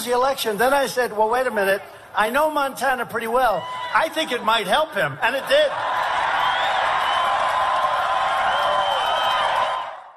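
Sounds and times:
speech: 0.0 - 6.1
crowd cheering at a Donald Trump rally: 5.2 - 10.1.

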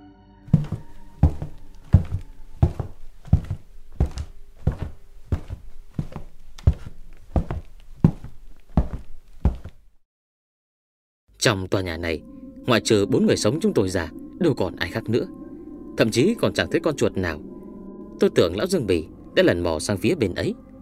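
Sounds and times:
rustling footsteps in the dark: 0.5 - 9.9
speech: 11.4 - 15.4, 16.0 - 17.5, 18.2 - 20.6.

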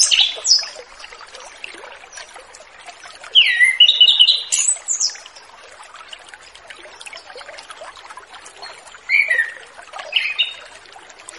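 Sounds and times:
orange-headed thrush song in relaxed open-flowing style: 3.4 - 5.2, 9.1 - 10.6.

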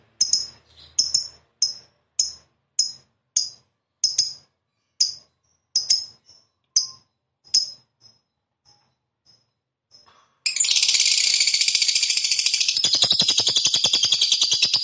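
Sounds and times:
fighter-type lovebird chattering trill: 0.2 - 2.4, 10.5 - 14.8.

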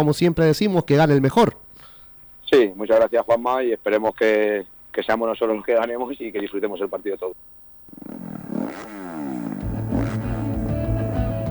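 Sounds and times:
speech: 0.0 - 1.6, 2.5 - 8.2
motocross motorcycles revving at the Spanish Motocross Championship, Cerro Negro, Talavera de la Reina: 7.9 - 11.4.

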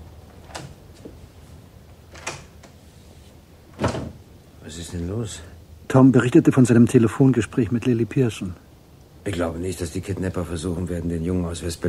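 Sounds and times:
bedroom door being shut: 3.7 - 4.2
speech: 4.7 - 8.6, 9.2 - 11.8.

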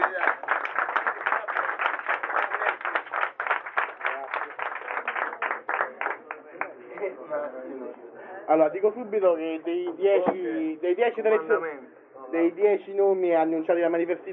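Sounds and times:
crowd applause: 0.0 - 6.7
speech: 8.5 - 14.3.

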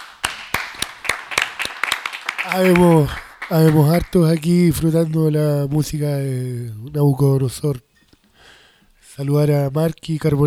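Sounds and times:
few people clapping in the studio: 0.0 - 4.9
speech: 2.4 - 7.9, 9.2 - 10.4.

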